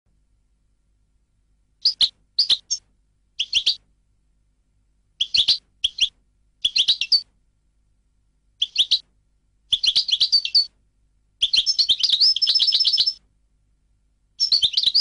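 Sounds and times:
European goldfinch chirping: 1.8s - 2.8s, 3.4s - 3.8s, 5.2s - 7.3s, 8.6s - 9.1s, 9.7s - 10.7s, 11.4s - 13.2s, 14.4s - 14.9s.

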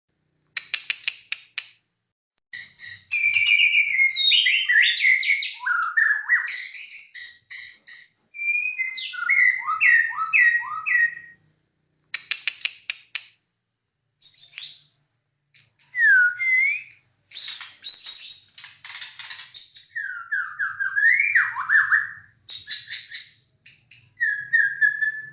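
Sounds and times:
white-rumped shama singing: 2.6s - 11.4s, 15.8s - 18.3s, 19.8s - 23.1s, 24.2s - 25.3s.

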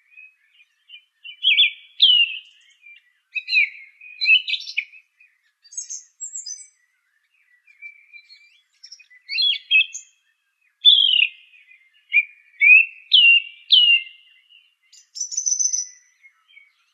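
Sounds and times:
song thrush singing varied phrases: 0.0s - 16.9s.

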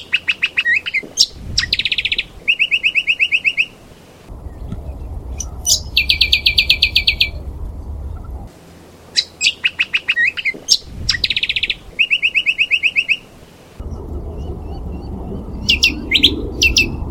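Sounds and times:
brown honeyeater Lichmera indistincta calling: 0.0s - 3.8s, 4.9s - 7.5s, 9.1s - 13.3s, 13.9s - 17.0s.

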